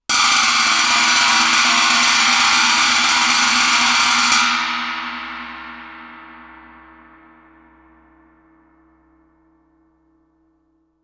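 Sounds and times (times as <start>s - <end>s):
Chinese stick roll on suspended cymbals: 0.0s - 8.7s.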